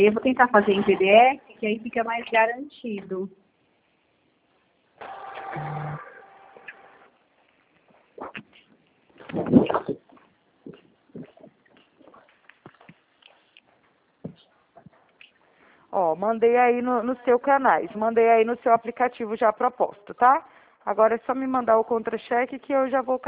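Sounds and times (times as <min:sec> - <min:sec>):
speech: 0:00.0 - 0:03.4, 0:05.0 - 0:06.1, 0:15.9 - 0:23.2
printer printing a document: 0:05.0 - 0:07.1.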